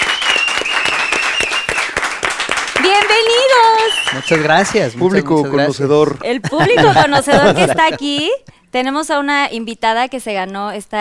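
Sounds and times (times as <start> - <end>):
audience applause: 0.0 - 5.4
speech: 4.2 - 10.9
laughter: 6.3 - 8.5.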